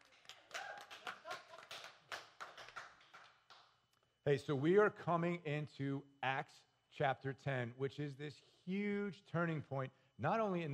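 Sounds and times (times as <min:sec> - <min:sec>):
audience clapping in the building: 0:00.0 - 0:03.8
speech: 0:04.2 - 0:10.7.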